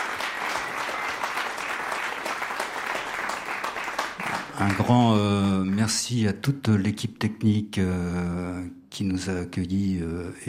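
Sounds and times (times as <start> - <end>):
audience applause: 0.0 - 5.2
speech: 4.6 - 10.4.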